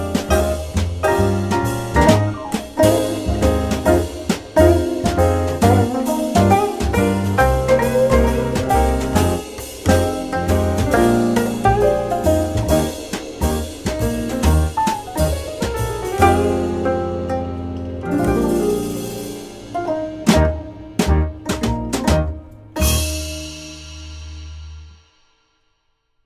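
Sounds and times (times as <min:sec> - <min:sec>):
music: 0:00.0 - 0:26.2.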